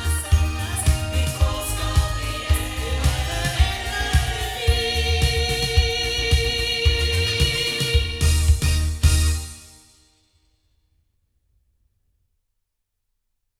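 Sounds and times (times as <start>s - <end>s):
sound from loudspeakers recorded with a condenser microphone: 0.0s - 9.6s.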